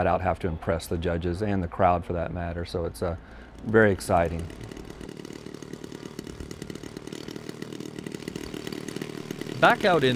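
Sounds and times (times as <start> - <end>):
speech: 0.0 - 4.8, 9.6 - 10.1
aerobatic plane engines warming up: 2.9 - 10.1.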